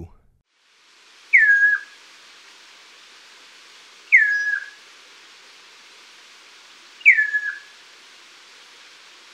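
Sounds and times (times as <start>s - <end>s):
chestnut-crowned antpitta singing loud whistled phrases: 1.3s - 2.0s, 4.1s - 4.8s, 7.0s - 7.7s.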